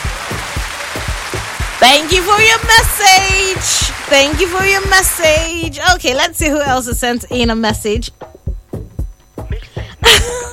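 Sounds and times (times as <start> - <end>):
round of applause: 0.0 - 5.6
speech: 1.8 - 8.4.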